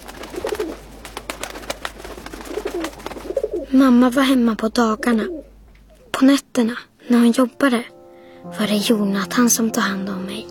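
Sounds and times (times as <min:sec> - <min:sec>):
pigeons cooing: 0:00.0 - 0:03.7
outdoor noise: 0:00.0 - 0:08.5
speech: 0:03.7 - 0:05.4, 0:06.2 - 0:10.4.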